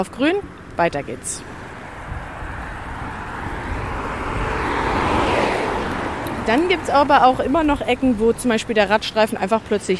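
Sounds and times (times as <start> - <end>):
speech: 0.0 - 1.6, 6.4 - 9.9
car traffic passing on Pilgrimstein street heard from a contraflow bike lane: 0.0 - 9.9.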